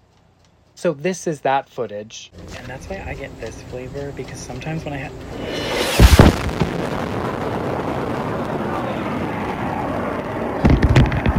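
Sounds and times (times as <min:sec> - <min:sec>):
speech: 0:00.8 - 0:05.9
giant plane flying over: 0:02.4 - 0:11.3.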